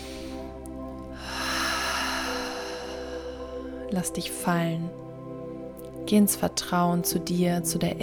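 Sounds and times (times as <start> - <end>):
deep breath during a grounding meditation: 0.0 - 3.8
speech: 3.9 - 5.0, 6.1 - 8.0.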